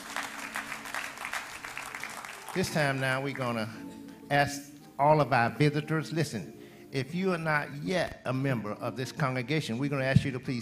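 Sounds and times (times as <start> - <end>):
audience round of applause: 0.0 - 3.4
speech: 2.6 - 10.6.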